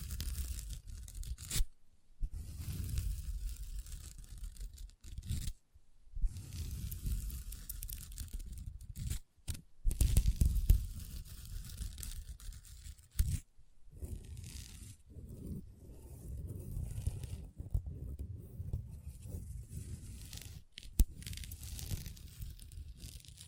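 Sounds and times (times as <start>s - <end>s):
long nails scratching and tapping across a table: 0.0s - 1.7s, 2.3s - 5.6s, 6.3s - 23.4s.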